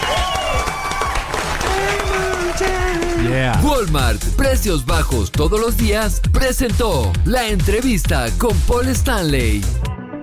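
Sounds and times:
applause: 0.0s - 3.6s
speech: 3.6s - 9.8s.

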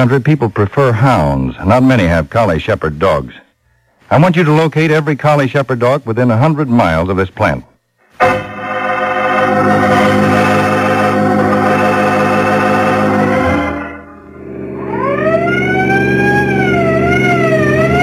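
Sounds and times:
speech: 0.0s - 3.4s, 4.1s - 8.3s
car siren wailing: 8.5s - 18.0s.

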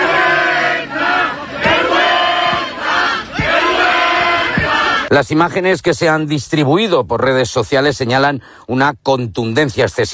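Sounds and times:
crowd shouting during police charge: 0.0s - 5.1s
speech: 5.1s - 10.1s.

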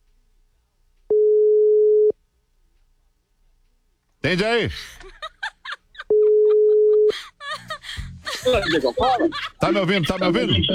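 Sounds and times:
telephone ringing tone while calling someone: 1.1s - 2.2s, 6.1s - 7.1s
speech: 4.2s - 5.2s, 8.4s - 10.7s
laughter: 4.4s - 10.7s.

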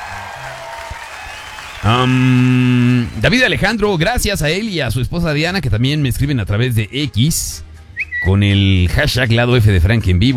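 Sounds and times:
applause: 0.0s - 3.8s
speech: 1.8s - 10.3s.

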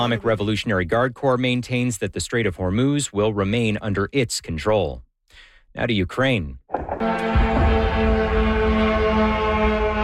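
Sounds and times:
speech: 0.0s - 8.2s
drones flying overhead with buzzing engine drone: 7.0s - 10.0s.

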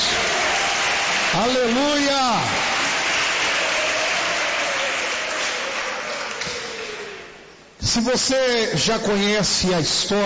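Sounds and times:
crowd applauding: 0.0s - 7.5s
speech: 1.3s - 2.7s, 7.9s - 10.2s.

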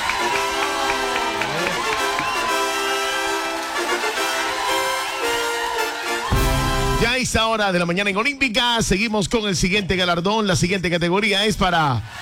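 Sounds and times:
crowd applause: 0.0s - 7.1s
speech: 7.2s - 12.2s.

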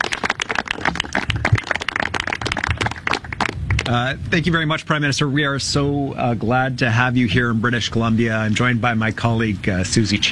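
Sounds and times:
audience clapping at press conference: 0.0s - 3.9s
speech: 3.9s - 10.2s.

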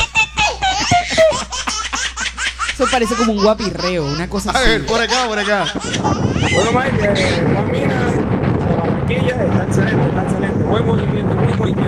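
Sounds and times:
laughter: 0.0s - 8.2s
old electric house fan blowing: 0.0s - 11.8s
speech: 2.8s - 8.4s, 9.1s - 11.8s.

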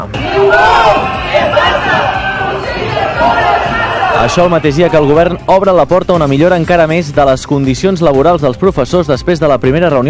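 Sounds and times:
protest crowd shouts: 0.0s - 5.3s
protest crowd chanting: 0.2s - 5.2s
speech: 4.2s - 10.0s.

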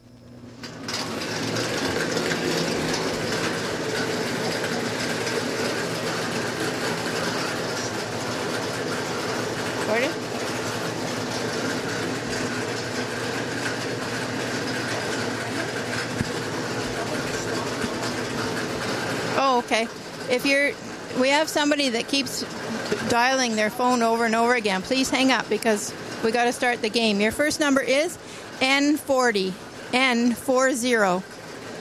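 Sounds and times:
bingo ball machine running: 0.0s - 31.7s
speech: 19.8s - 31.3s.

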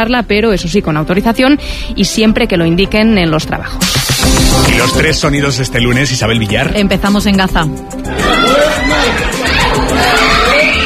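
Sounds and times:
speech: 0.0s - 10.3s
family screaming after an air strike: 8.1s - 10.8s.

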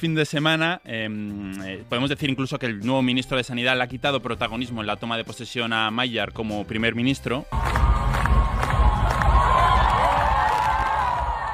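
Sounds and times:
speech: 0.0s - 7.9s
crowd cheering and shouting on the steps of the Hungarian Parliament: 7.5s - 11.5s.

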